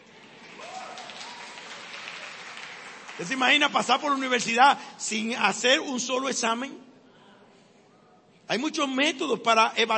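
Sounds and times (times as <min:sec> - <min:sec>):
students applauding: 0:00.0 - 0:04.6
speech: 0:03.2 - 0:06.9, 0:08.5 - 0:09.9.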